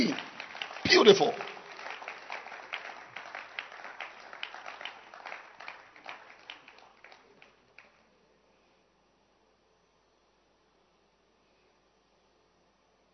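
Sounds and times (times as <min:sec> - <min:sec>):
audience clapping hands: 0:00.0 - 0:08.1
speech: 0:01.0 - 0:01.5.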